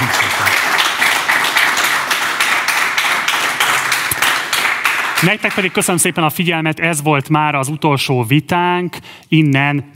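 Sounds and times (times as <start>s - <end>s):
audience applause: 0.0s - 6.1s
speech: 5.2s - 9.9s.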